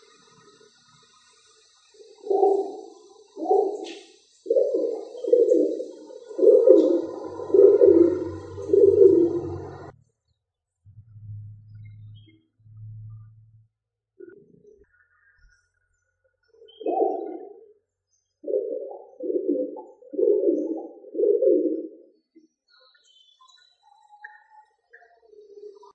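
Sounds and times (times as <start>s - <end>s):
rock pigeon: 2.0s - 9.9s, 16.4s - 17.8s, 18.4s - 22.1s, 22.8s - 25.9s.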